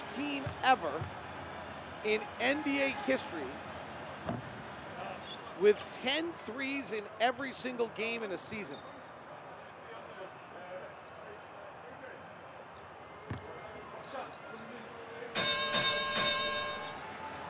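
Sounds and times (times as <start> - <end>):
speech: 0.2 - 1.2, 2.0 - 3.7, 5.6 - 8.9
sponsored broadcast bell sound effect: 15.4 - 17.1.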